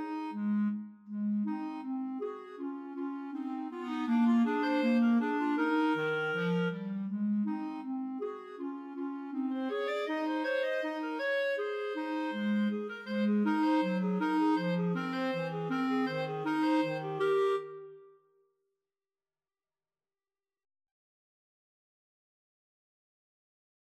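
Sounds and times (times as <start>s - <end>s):
clarinet trio: 0.0s - 18.1s.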